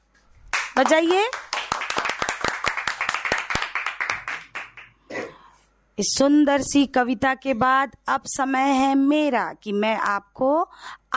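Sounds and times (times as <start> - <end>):
audience clapping: 0.5 - 5.0
speech: 0.8 - 1.4, 6.0 - 11.1.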